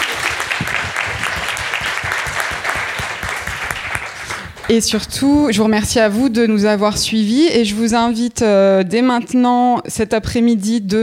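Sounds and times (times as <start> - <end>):
audience applause: 0.0 - 4.7
speech: 4.7 - 11.0.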